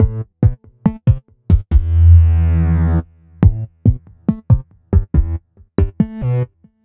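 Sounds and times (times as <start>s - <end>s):
synth bass: 1.5s - 6.5s.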